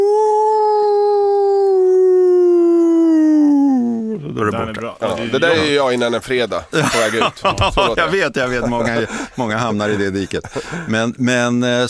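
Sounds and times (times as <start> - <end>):
person imitating a wolf howl: 0.0 - 4.3
laughter: 4.2 - 11.2
speech: 4.5 - 11.8.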